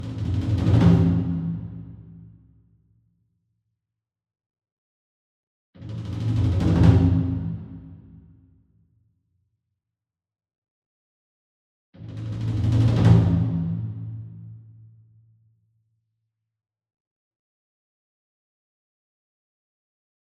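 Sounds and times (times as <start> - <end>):
single 28 inch taiko drum roll with hard beater: 0.0 - 2.0, 5.8 - 8.1, 12.1 - 14.1.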